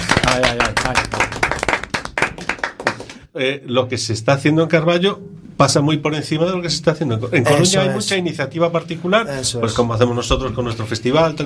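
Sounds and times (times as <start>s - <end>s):
audience clapping: 0.0s - 3.3s
speech: 0.4s - 1.2s, 3.4s - 11.4s.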